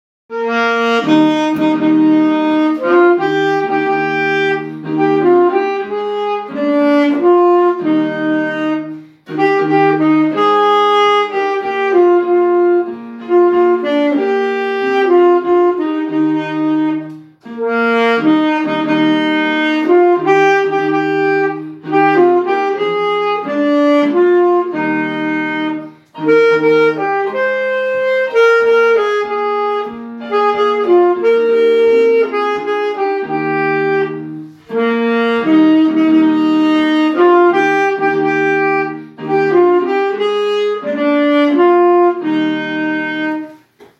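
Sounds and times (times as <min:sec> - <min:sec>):
saxophone: 0:00.3 - 0:43.9.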